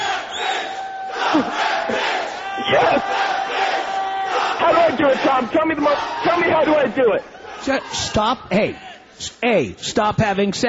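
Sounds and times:
crowd chanting in unison: 0:00.0 - 0:07.7
speech: 0:04.6 - 0:10.6.

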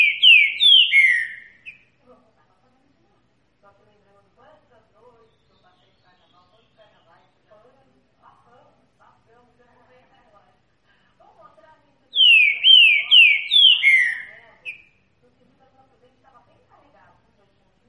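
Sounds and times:
green-winged saltator song of slurred whistles: 0:00.0 - 0:01.6, 0:12.2 - 0:14.9.

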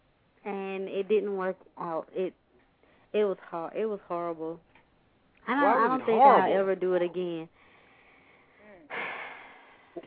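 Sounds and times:
speech: 0:00.4 - 0:02.4, 0:03.1 - 0:04.7, 0:05.5 - 0:07.6
woman taking a sudden deep breath: 0:07.6 - 0:10.0.

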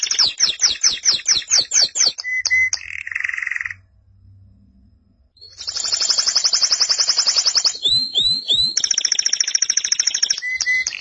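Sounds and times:
canary singing: 0:00.0 - 0:03.8, 0:05.4 - 0:10.9
low hum: 0:03.9 - 0:05.4.

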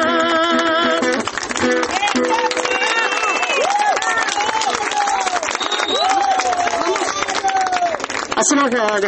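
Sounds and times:
concert audience dense clapping after a song: 0:00.2 - 0:09.0
concert audience shouting voices: 0:02.0 - 0:08.0
concert audience whistle-like calls: 0:02.3 - 0:04.7, 0:05.2 - 0:06.6
speech: 0:08.7 - 0:09.0.

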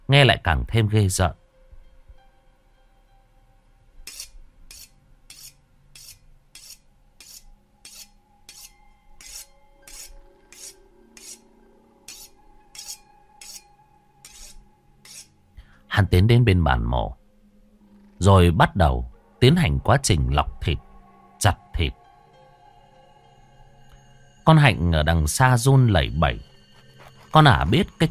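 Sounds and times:
speech: 0:00.1 - 0:01.4, 0:16.1 - 0:17.2, 0:18.2 - 0:22.0, 0:24.5 - 0:26.5, 0:27.3 - 0:28.1
low sustained hum: 0:01.4 - 0:24.4
knife sharpened on a large stone slab on a wooden frame at night: 0:04.0 - 0:15.3.

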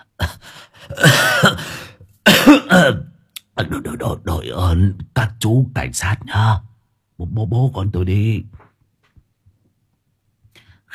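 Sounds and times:
old man having a harsh violent coughing fit: 0:00.2 - 0:03.2
speech: 0:02.7 - 0:08.6.

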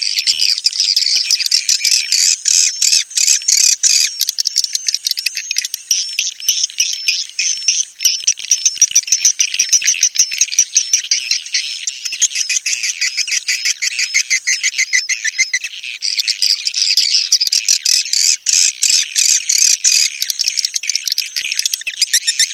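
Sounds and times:
swiftlet chatter: 0:00.0 - 0:22.5.

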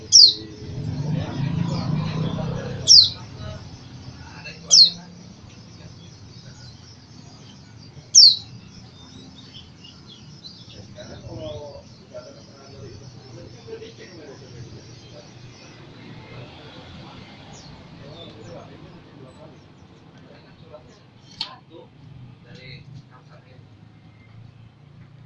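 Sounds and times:
white-eye twittering song in East Java: 0:00.0 - 0:18.7.

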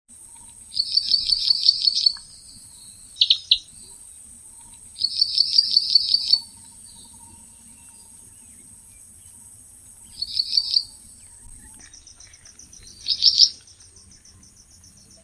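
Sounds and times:
bird trilling and chirping: 0:00.8 - 0:04.0, 0:04.6 - 0:08.2, 0:10.1 - 0:14.4.

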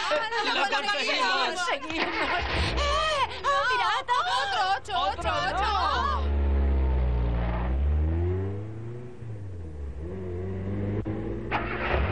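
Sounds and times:
laughter: 0:00.0 - 0:06.2
speech: 0:00.1 - 0:06.3
car engine revving as the car pulls away: 0:05.1 - 0:12.1.

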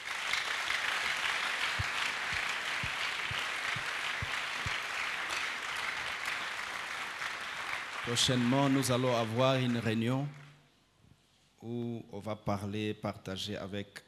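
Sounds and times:
church congregation applauding: 0:00.0 - 0:10.6
speech: 0:08.1 - 0:10.4, 0:11.6 - 0:14.0.

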